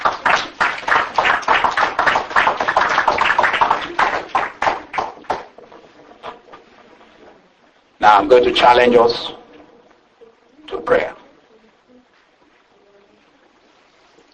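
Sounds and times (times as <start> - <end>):
audience clapping hands: 0.0 - 5.6
speech: 8.0 - 9.4, 10.9 - 11.2.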